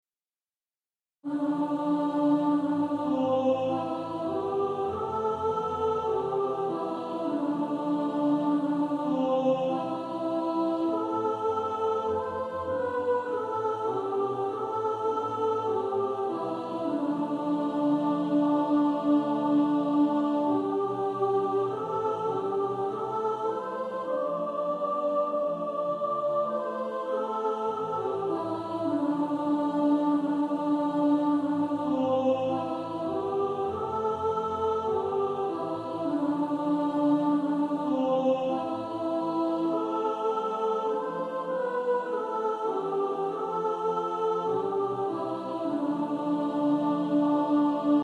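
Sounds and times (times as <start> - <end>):
soprano singing a hymn: 1.2 - 48.0.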